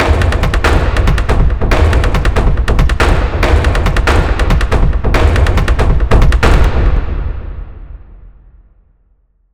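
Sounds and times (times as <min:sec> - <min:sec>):
orchestral drum loop: 0:00.0 - 0:07.2.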